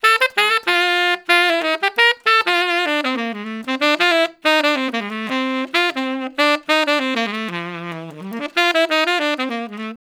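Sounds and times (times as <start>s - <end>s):
traditional jazz tenor saxophone solo: 0.0s - 10.1s.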